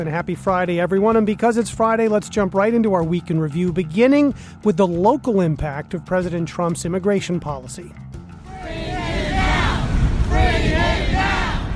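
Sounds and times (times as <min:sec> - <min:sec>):
speech: 0:00.0 - 0:08.9
crowd of protesters shouting: 0:08.4 - 0:11.7.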